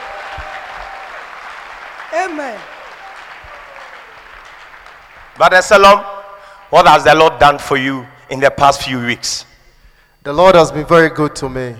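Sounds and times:
audience clapping hands: 0:00.0 - 0:05.8
speech: 0:02.1 - 0:02.7, 0:05.4 - 0:06.1, 0:06.7 - 0:09.5, 0:10.2 - 0:11.7.

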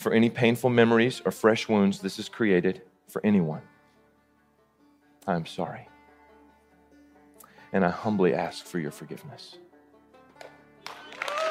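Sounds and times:
speech: 0:00.0 - 0:03.7, 0:05.2 - 0:05.9, 0:07.7 - 0:09.6
standing ovation applause from church crowd: 0:10.4 - 0:11.4.

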